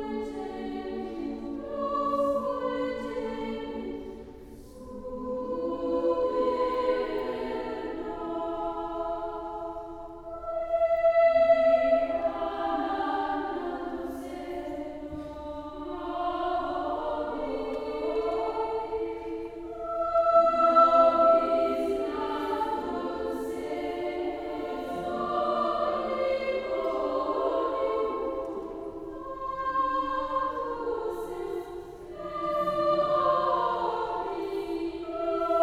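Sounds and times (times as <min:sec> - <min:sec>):
children's choir singing: 0:00.0 - 0:35.6.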